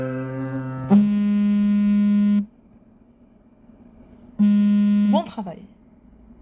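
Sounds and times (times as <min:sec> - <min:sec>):
bass part: 0:00.4 - 0:02.5, 0:04.4 - 0:05.2.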